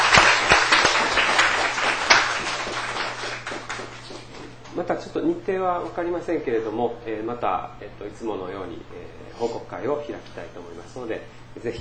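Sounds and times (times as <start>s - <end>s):
audience applause: 0.0s - 4.6s
speech: 4.9s - 11.7s.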